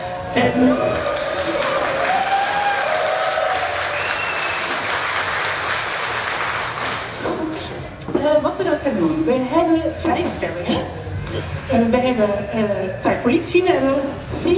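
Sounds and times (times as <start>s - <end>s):
speech: 0.4s - 1.0s, 8.6s - 14.5s
audience applause: 0.7s - 7.2s.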